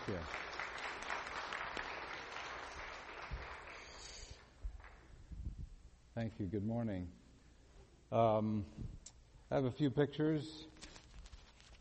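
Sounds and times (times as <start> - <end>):
church congregation applauding to welcome a speaker: 0.0 - 5.1
speech: 0.1 - 0.5, 6.2 - 7.2, 8.1 - 10.7.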